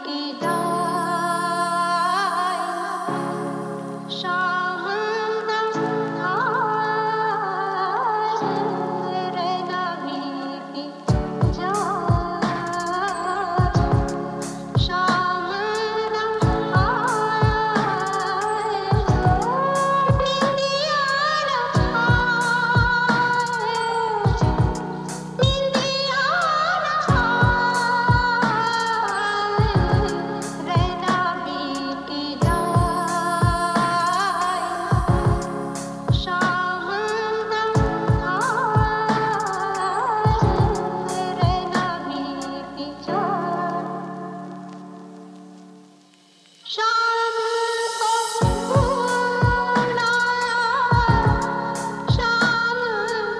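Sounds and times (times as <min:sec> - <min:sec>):
lofi music: 0:00.3 - 0:53.3.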